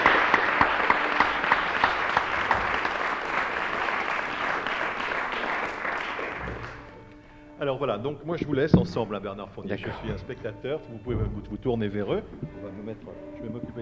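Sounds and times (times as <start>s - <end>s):
audience applauding musicians entering stage: 0.0s - 7.2s
speech: 7.8s - 13.8s.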